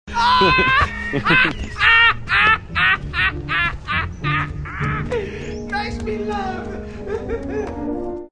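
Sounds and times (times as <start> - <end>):
person laughing: 0.1 - 5.4, 6.6 - 7.9.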